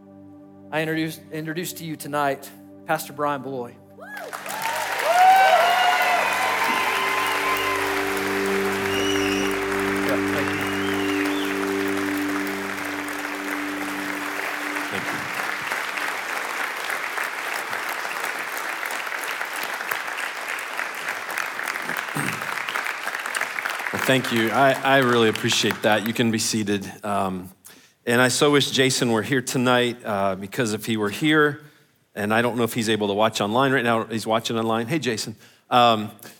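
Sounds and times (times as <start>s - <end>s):
organ-like tones: 0.0s - 18.6s, 24.0s - 26.2s
speech: 0.7s - 4.4s, 24.1s - 36.3s
large church crowd applause: 4.1s - 26.2s.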